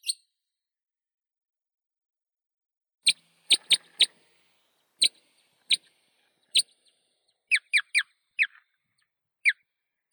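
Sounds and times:
white-winged crossbill Loxia leucoptera calling: 0:03.1 - 0:08.8, 0:09.5 - 0:10.1.

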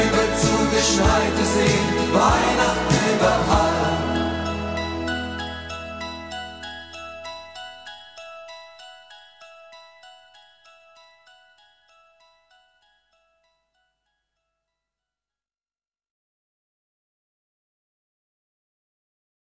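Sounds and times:
festive music with jingle bells: 0:00.0 - 0:13.6.

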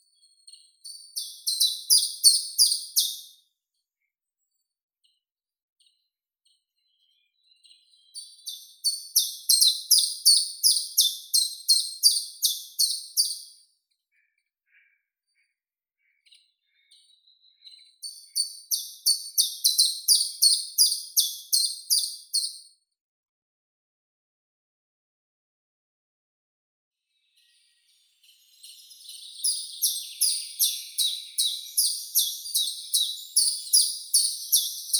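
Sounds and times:
chiffchaff Phylloscopus collybita singing: 0:00.9 - 0:03.3, 0:08.5 - 0:13.5, 0:18.1 - 0:22.6, 0:29.1 - 0:34.9.

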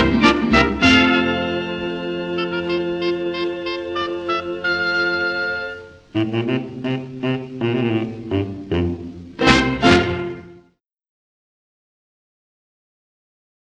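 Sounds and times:
Spanish village orchestra playing: 0:00.0 - 0:10.7
people singing a refrain: 0:01.0 - 0:10.5.

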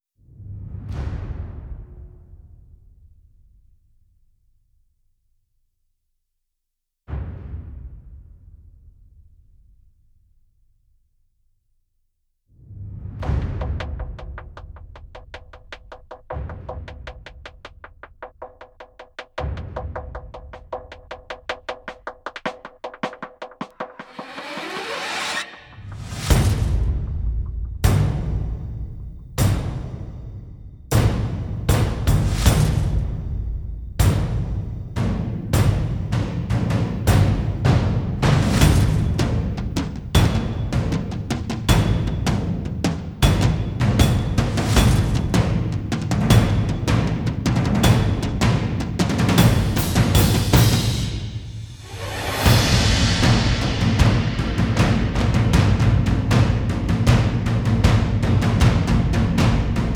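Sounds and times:
percussion mix: 0:13.1 - 0:59.9.

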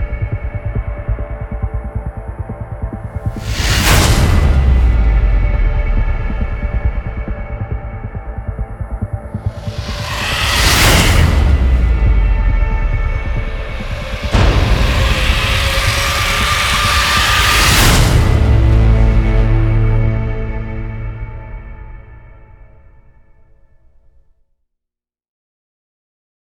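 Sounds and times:
ambient mix: 0:00.0 - 0:23.9.

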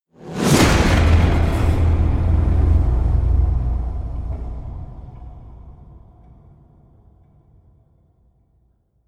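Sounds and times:
whoosh: 0:00.2 - 0:06.3
evil slams: 0:00.2 - 0:07.4.

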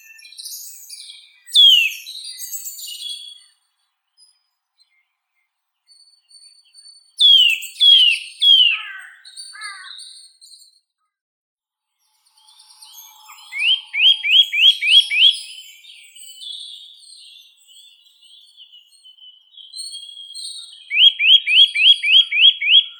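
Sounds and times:
Eurasian nuthatch Sitta europaea calling: 0:01.5 - 0:02.8, 0:07.2 - 0:09.9, 0:12.8 - 0:15.9, 0:20.2 - 0:22.9.

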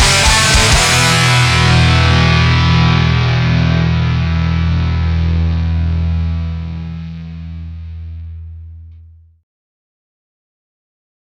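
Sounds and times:
punk metal music: 0:00.0 - 0:08.9.

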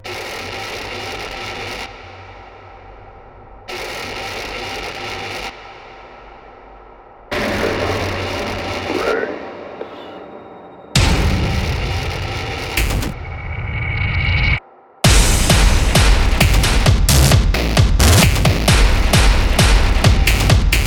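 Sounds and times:
noisy drum mix: 0:00.0 - 0:02.8, 0:03.7 - 0:06.4, 0:07.3 - 0:10.0, 0:11.0 - 0:13.6, 0:15.0 - 0:20.8.

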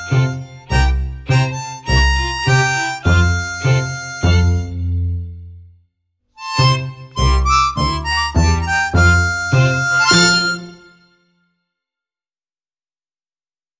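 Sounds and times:
harmonica: 0:00.0 - 0:05.4, 0:06.4 - 0:11.1.

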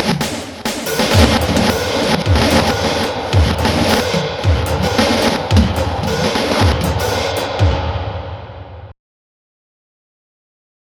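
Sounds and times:
jazz drums: 0:00.0 - 0:08.1.

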